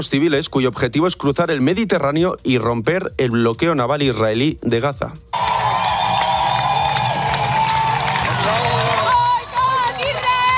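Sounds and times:
speech: 0.0 - 5.5
activists cheering and shouting at Barcelona harbour: 5.4 - 10.5.

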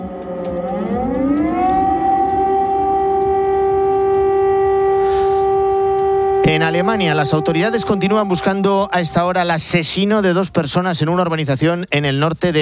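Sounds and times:
air raid sirens wailing in Kiev: 0.0 - 10.5
speech: 6.5 - 12.5.

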